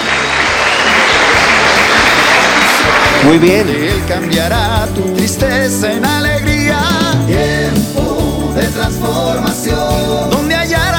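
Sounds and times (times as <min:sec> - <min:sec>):
church congregation applause: 0:00.0 - 0:04.8
speech: 0:03.2 - 0:10.5.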